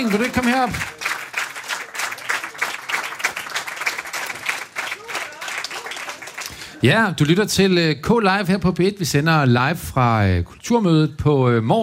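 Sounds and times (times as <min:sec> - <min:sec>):
speech: 0:00.0 - 0:01.0, 0:06.8 - 0:11.8
audience applause: 0:00.0 - 0:07.4.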